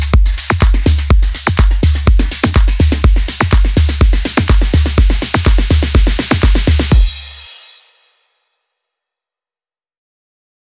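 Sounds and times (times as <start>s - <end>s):
progressive drums: 0.0s - 8.2s.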